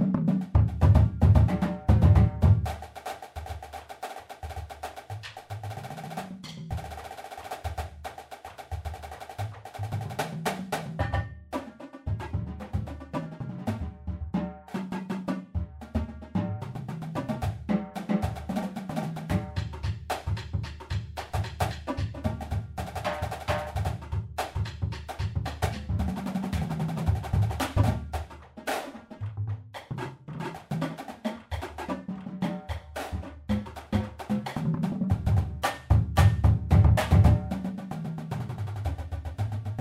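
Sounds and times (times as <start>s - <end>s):
marching percussion: 0.0s - 39.7s.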